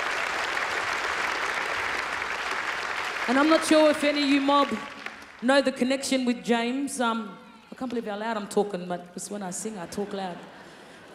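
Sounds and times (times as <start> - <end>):
audience applause at a live event: 0.0 - 5.4
speech: 3.3 - 11.1.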